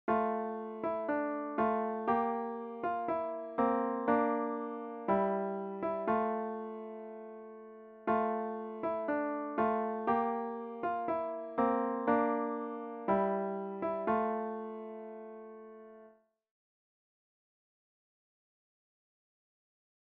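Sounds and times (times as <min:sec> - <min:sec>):
solo piano: 0:00.1 - 0:16.2.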